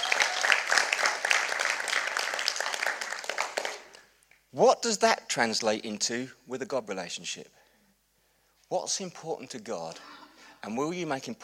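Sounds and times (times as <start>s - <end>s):
crowd applauding: 0.0s - 4.1s
speech: 4.6s - 7.6s, 8.7s - 11.4s.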